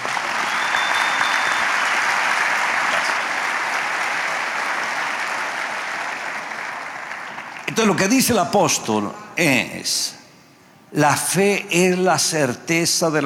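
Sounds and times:
audience applause: 0.0s - 7.9s
speech: 7.8s - 10.2s, 10.9s - 13.2s.

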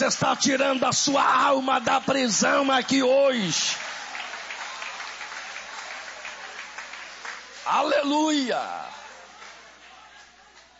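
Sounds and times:
speech: 0.0s - 3.9s, 7.7s - 9.0s
audience applauding: 0.0s - 10.7s.

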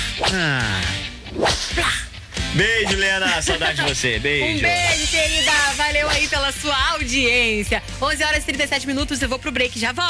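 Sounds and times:
speech: 0.3s - 1.9s, 2.5s - 10.0s
whip crack sound effect with swishing whoosh: 1.4s - 1.8s.

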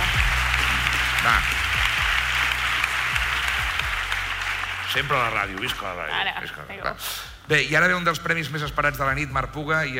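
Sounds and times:
awards ceremony audience clapping: 0.0s - 6.4s
speech: 1.2s - 1.6s, 4.9s - 9.9s.

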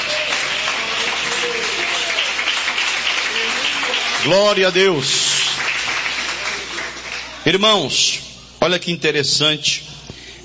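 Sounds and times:
audience clapping hands: 0.0s - 7.5s
speech: 4.2s - 5.3s, 7.4s - 9.9s.

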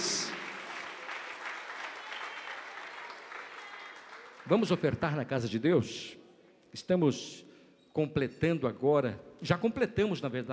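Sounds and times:
audience applauding: 0.0s - 4.9s
speech: 4.5s - 10.5s.

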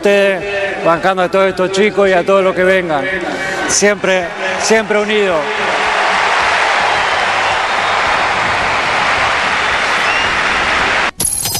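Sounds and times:
speech: 0.0s - 5.7s
crowd ovation and applause for Messi: 3.8s - 11.2s.

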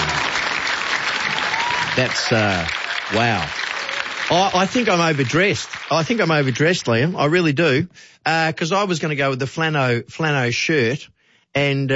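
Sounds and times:
crowd clapping: 0.0s - 7.1s
voices whooping and cheering: 0.1s - 4.3s
speech: 2.0s - 3.6s, 4.3s - 11.9s.

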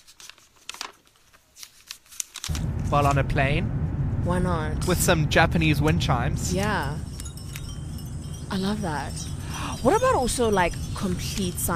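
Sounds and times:
page being turned and flipped: 0.0s - 3.2s
speech: 2.9s - 7.1s, 8.5s - 11.7s.

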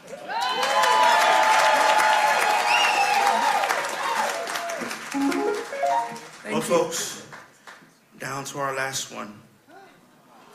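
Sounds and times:
audience clapping: 0.0s - 8.0s
speech: 6.7s - 7.2s, 8.4s - 9.5s.

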